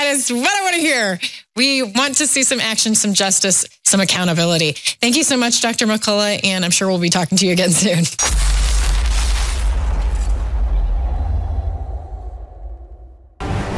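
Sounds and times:
speech: 0:00.2 - 0:08.7
thunder in Florida: 0:08.3 - 0:13.6.

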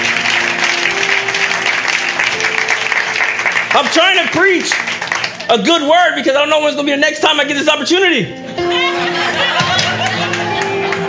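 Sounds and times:
audience clapping: 0:00.0 - 0:06.0, 0:09.8 - 0:11.0
speech: 0:03.8 - 0:08.4
laughter: 0:08.4 - 0:11.0.

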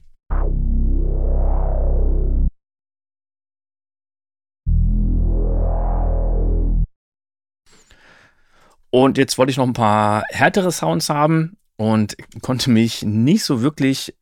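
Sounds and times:
synthesizer bass notes with warming filter sweep: 0:00.3 - 0:02.6, 0:04.7 - 0:06.9
speech: 0:08.9 - 0:14.2.

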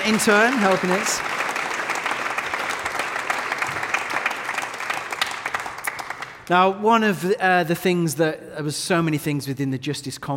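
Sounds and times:
audience applause: 0:00.0 - 0:06.5
speech: 0:00.1 - 0:01.4, 0:06.5 - 0:10.3.

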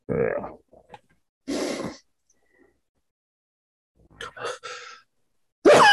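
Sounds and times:
breathy gasping inhales: 0:04.3 - 0:05.1.

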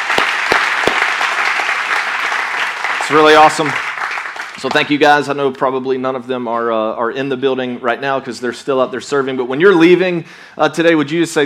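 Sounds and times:
audience applause: 0:00.0 - 0:05.0
speech: 0:03.1 - 0:03.9, 0:04.6 - 0:11.4.

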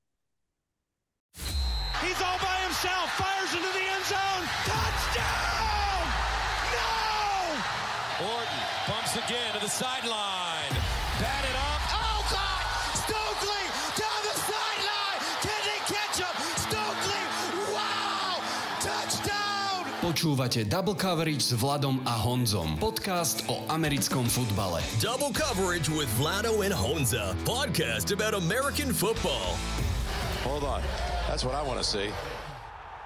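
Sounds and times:
crowd cheering: 0:01.4 - 0:21.2, 0:29.2 - 0:33.0
shouts and whoops in a podcast jingle: 0:02.0 - 0:20.1
speech: 0:09.3 - 0:10.8, 0:20.1 - 0:32.3.

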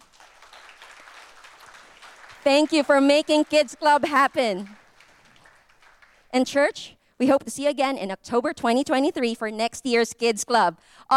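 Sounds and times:
round of applause: 0:00.0 - 0:06.7
speech: 0:02.4 - 0:04.8, 0:06.3 - 0:11.1.

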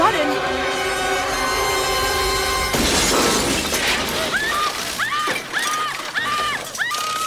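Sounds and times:
intensifying film music: 0:00.0 - 0:03.7
crackling debris: 0:02.2 - 0:07.2
TV exploding with a loud shattering crash in the film Matilda: 0:02.7 - 0:05.8.

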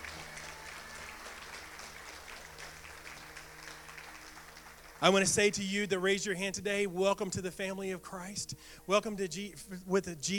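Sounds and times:
congregation applauding in a church service during a salvation call: 0:00.0 - 0:06.2
speech: 0:05.0 - 0:10.3.

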